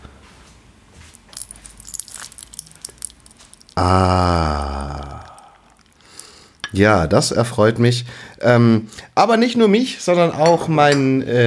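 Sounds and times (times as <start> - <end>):
hot tea poured over rock sugar crackling: 1.1 - 6.9
speech: 3.8 - 5.0, 6.7 - 11.4.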